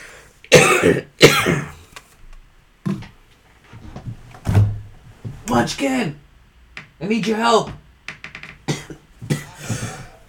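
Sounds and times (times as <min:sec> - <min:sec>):
person coughing and choking: 0:00.5 - 0:01.8, 0:08.7 - 0:10.2
speech: 0:00.8 - 0:01.6, 0:05.5 - 0:06.2, 0:07.0 - 0:07.8.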